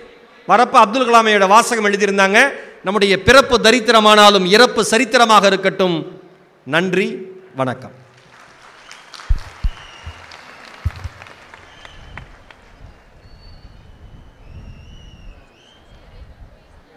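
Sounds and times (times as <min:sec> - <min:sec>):
speech: 0:00.5 - 0:08.0
audience applause after a motivational speech: 0:08.2 - 0:13.1
high whistles: 0:08.8 - 0:16.0.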